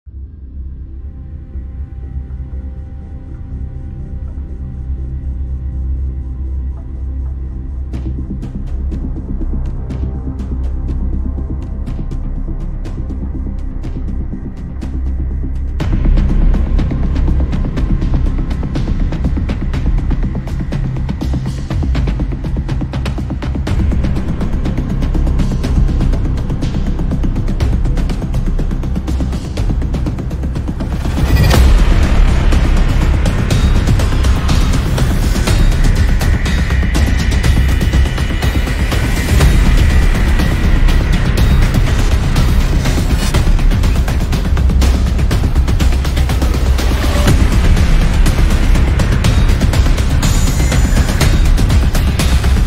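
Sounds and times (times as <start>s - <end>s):
horror movie suspense background music: 0.1s - 52.6s.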